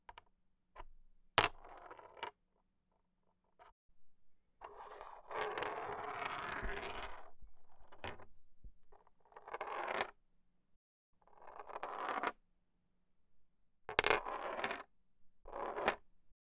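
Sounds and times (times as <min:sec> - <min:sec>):
chess pieces rolling on the chess board: 0:04.8 - 0:07.2, 0:09.4 - 0:10.1, 0:11.6 - 0:12.3, 0:13.9 - 0:14.8, 0:15.5 - 0:16.0.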